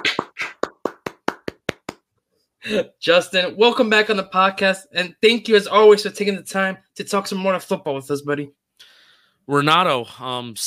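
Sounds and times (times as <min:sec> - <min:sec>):
hand claps: 0:00.0 - 0:02.1
speech: 0:02.6 - 0:08.9, 0:09.5 - 0:10.6.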